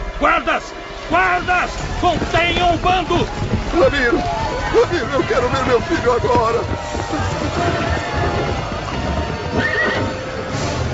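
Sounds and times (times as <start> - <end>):
continuous noisy bustle: 0.0 - 10.9
horse-drawn carriage hooves clattering: 0.0 - 10.9
speech: 0.2 - 7.8
carriage wheels rumbling: 0.7 - 10.9
horses whinnying: 3.1 - 10.6.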